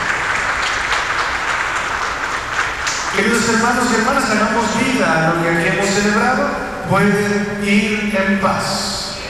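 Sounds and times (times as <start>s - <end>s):
strong audience applause: 0.0s - 3.6s
speech: 3.1s - 9.0s.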